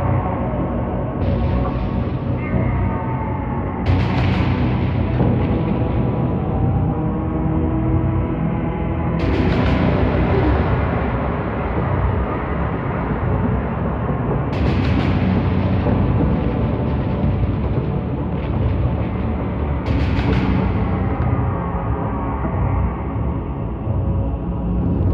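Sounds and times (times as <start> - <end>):
ambient game music: 0.0 - 25.1.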